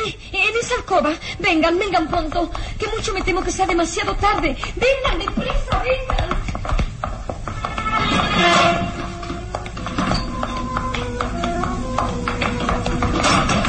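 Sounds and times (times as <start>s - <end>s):
footsteps entering a room: 0.0s - 13.6s
speech: 0.1s - 6.8s, 8.1s - 9.0s
door closing: 7.8s - 13.6s.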